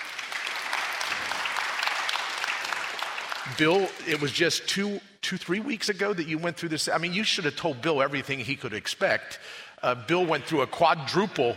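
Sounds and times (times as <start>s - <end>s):
audience applause: 0.0s - 4.4s
speech: 3.5s - 11.5s.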